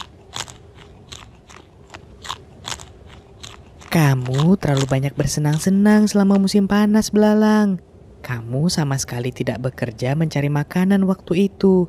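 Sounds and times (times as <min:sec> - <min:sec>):
greedy crunchy chewing: 0:00.0 - 0:06.6
low steady rumble: 0:00.0 - 0:11.8
speech: 0:03.9 - 0:11.8.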